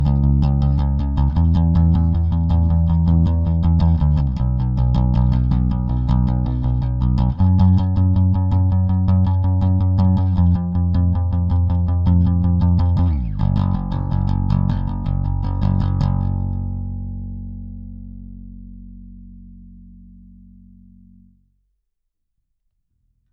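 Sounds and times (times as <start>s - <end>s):
guitar pick pre comp: 0.0s - 21.4s.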